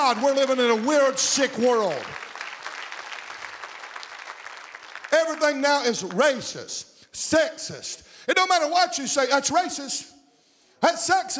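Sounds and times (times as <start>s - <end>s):
speech: 0.0s - 2.2s, 5.4s - 10.2s, 10.8s - 11.3s
audience applause: 0.0s - 5.6s.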